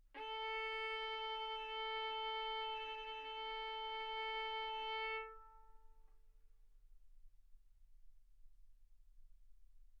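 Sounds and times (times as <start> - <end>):
violin arco on A string: 0.2 - 5.7.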